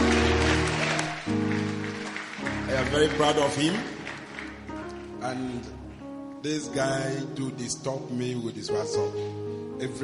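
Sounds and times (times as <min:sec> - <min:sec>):
crowd clapping: 0:00.0 - 0:06.2
keyboard or organ chords: 0:00.0 - 0:10.0
speech: 0:02.8 - 0:04.0, 0:05.3 - 0:05.8, 0:06.4 - 0:10.0.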